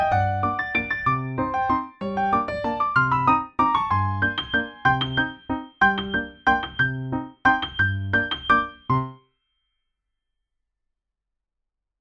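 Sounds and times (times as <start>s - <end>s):
piano duet waltz: 0.0s - 9.2s.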